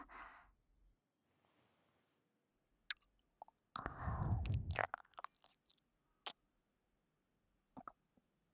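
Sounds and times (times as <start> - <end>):
ASMR ear licking sounds: 2.9 - 6.4.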